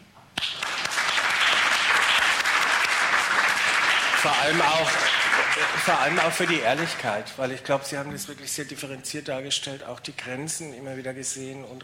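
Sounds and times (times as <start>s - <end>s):
audience applause: 0.4s - 7.2s
speech: 4.2s - 11.8s.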